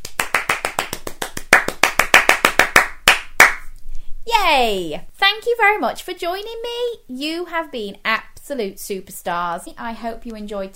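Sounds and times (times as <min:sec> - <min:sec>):
children clapping: 0:00.0 - 0:03.6
speech: 0:04.5 - 0:10.7.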